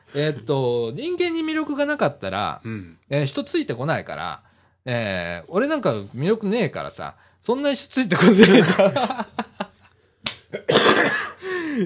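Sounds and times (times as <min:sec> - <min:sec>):
speech: 0:00.1 - 0:09.6, 0:10.5 - 0:11.1
laughter: 0:08.2 - 0:09.8
coughing fit: 0:10.5 - 0:11.8.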